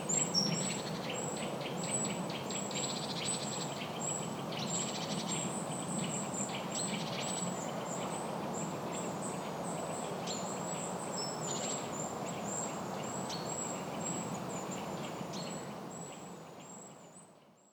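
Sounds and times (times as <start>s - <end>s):
forest birds: 0.0s - 17.7s.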